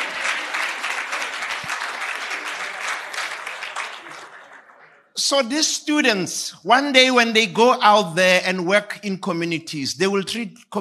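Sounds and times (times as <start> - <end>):
audience applause: 0.0 - 5.2
speech: 5.2 - 10.7.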